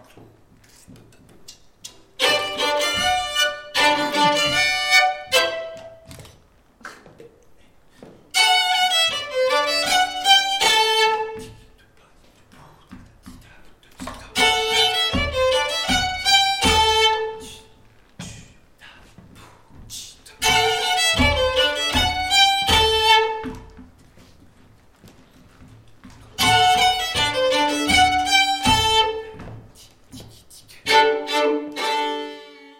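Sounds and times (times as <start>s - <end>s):
violin: 1.8s - 6.2s, 8.3s - 11.7s, 14.1s - 17.8s, 20.4s - 24.0s, 26.1s - 29.8s, 30.7s - 32.7s.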